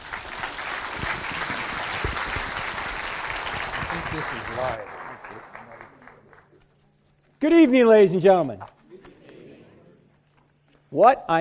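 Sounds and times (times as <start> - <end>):
audience applause welcoming a speaker to an evening talk: 0.0 - 6.6
speech: 4.2 - 5.5, 7.4 - 8.8, 10.9 - 11.3.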